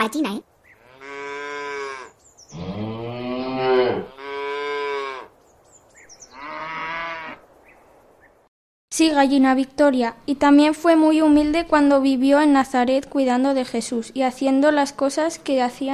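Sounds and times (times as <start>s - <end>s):
speech: 0.0s - 0.5s, 9.0s - 15.9s
ox mooing: 0.8s - 5.3s, 6.3s - 7.4s.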